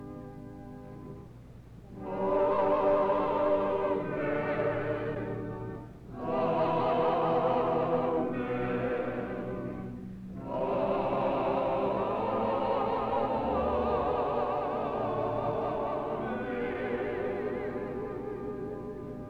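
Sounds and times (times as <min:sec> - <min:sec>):
choir singing amen: 0:02.0 - 0:19.2.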